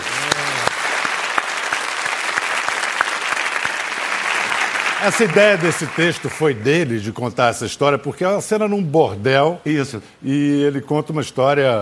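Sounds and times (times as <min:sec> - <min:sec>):
audience applause: 0:00.0 - 0:06.6
speech: 0:05.0 - 0:11.8.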